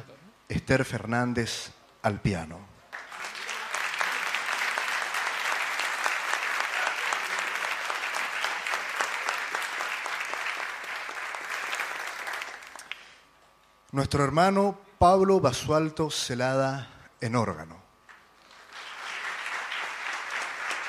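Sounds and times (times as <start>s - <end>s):
speech: 0.6s - 2.7s, 14.0s - 17.8s
audience applause for musicians: 2.9s - 13.2s, 18.4s - 20.8s.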